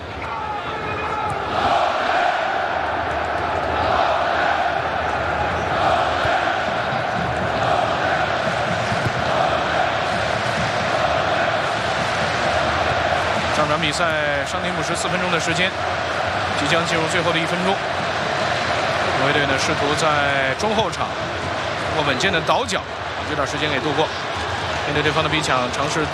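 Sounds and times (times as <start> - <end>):
stadium crowd of football fans performing Viking war chant: 0.0 - 19.6
speech: 13.9 - 16.0, 16.6 - 18.0, 19.2 - 24.3, 24.9 - 26.1.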